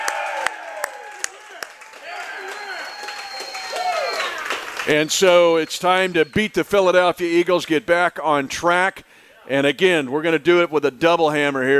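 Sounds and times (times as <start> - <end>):
live crowd cheering for Andy Reid: 0.0 - 7.0
speech: 4.9 - 11.7.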